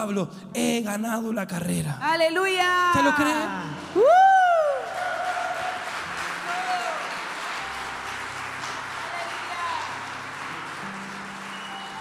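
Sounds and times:
speech: 0.0 - 4.3
audience applauding: 3.0 - 11.9.

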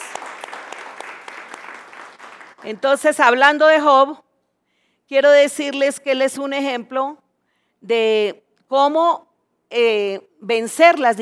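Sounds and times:
audience applause: 0.0 - 2.8
speech: 2.6 - 4.2, 5.1 - 7.2, 7.8 - 11.2.

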